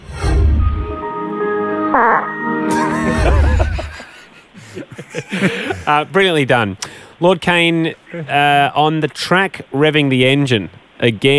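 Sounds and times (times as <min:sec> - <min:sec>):
music track with sustained wavering tones: 0:00.5 - 0:03.9
low raspy fart noise: 0:01.9 - 0:02.4
speech: 0:02.0 - 0:02.3, 0:05.0 - 0:11.3
laughter: 0:02.7 - 0:06.0.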